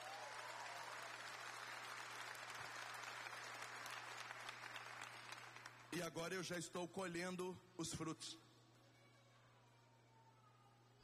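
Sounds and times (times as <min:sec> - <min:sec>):
audience applause: 0:00.0 - 0:05.9
speech: 0:05.9 - 0:08.4.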